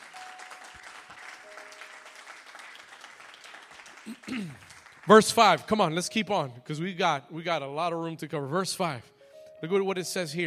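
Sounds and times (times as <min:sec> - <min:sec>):
audience applause, hand clapping: 0:00.0 - 0:06.0
speech: 0:04.1 - 0:10.4.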